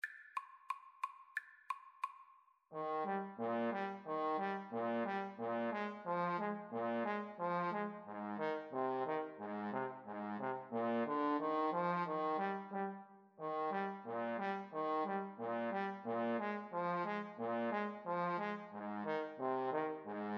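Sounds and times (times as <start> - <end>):
trombone duet: 2.8 - 12.9, 13.6 - 20.3.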